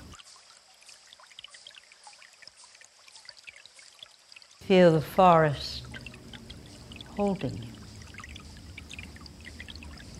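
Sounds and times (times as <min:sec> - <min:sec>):
small splashes and drips: 0:00.0 - 0:10.1
water rushing in a forest stream: 0:00.0 - 0:10.1
speech: 0:04.7 - 0:05.8, 0:07.2 - 0:07.8.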